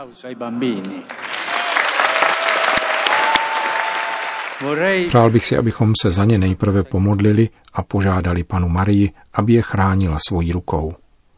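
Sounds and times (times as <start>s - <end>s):
speech: 0.0s - 1.3s, 4.6s - 11.0s
audience applauding loudly: 0.8s - 5.6s.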